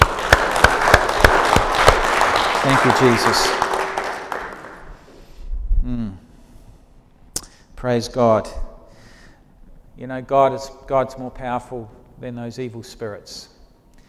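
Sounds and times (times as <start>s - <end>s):
audience clapping: 0.0s - 5.1s
speech: 2.6s - 3.6s, 7.8s - 8.6s, 10.0s - 13.5s.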